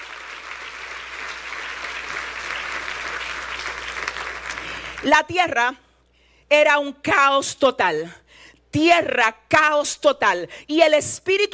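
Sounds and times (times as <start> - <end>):
audience applause: 0.0 - 5.0
speech: 5.0 - 5.8, 6.5 - 11.5.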